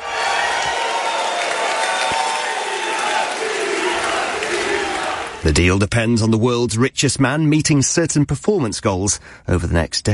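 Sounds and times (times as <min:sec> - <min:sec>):
whoops: 0:00.0 - 0:04.1
audience applause at Tesla annual shareholder meeting: 0:00.0 - 0:05.5
speech: 0:05.4 - 0:10.1.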